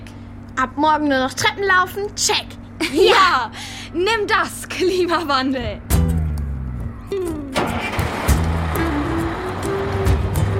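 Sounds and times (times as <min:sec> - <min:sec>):
speech: 0:00.6 - 0:06.0
bus engine idling: 0:07.2 - 0:10.5.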